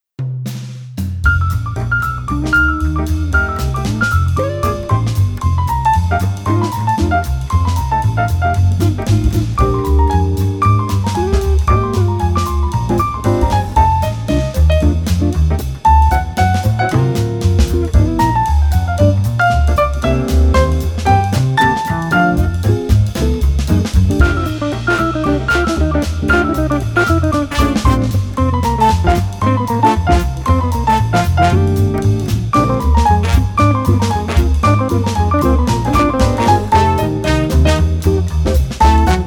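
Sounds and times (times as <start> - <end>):
instrumental music: 0.2 - 39.2.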